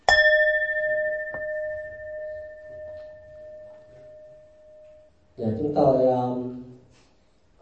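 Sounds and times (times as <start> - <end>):
Buddhist temple bell struck: 0.0 - 5.3
speech: 5.4 - 6.5.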